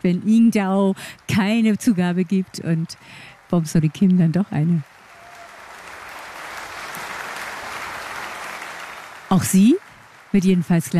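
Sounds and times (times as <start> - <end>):
speech: 0.0 - 4.9, 9.3 - 10.9
concert audience applauding hoping for an encore: 3.4 - 10.9.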